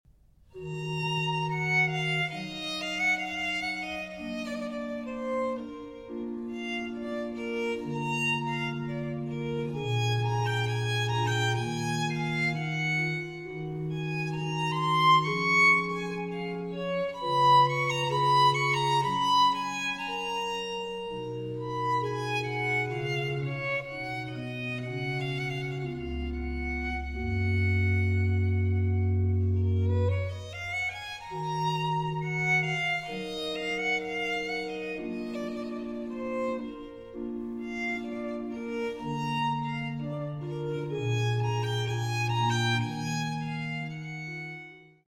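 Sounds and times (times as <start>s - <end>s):
violin and strings concerto: 0.6s - 45.0s.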